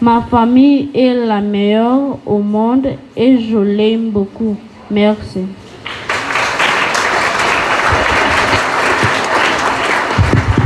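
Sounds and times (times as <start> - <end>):
speech: 0.0 - 5.6
audience applause: 5.8 - 10.6.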